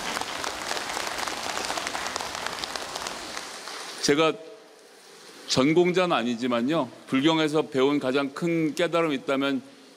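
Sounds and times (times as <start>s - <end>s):
audience applause: 0.0s - 4.0s
speech: 4.0s - 4.5s, 5.5s - 9.9s.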